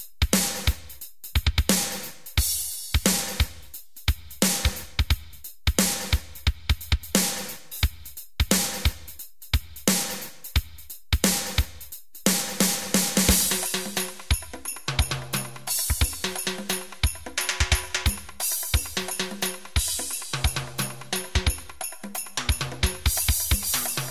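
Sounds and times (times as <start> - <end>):
drum solo: 0.0 - 24.0.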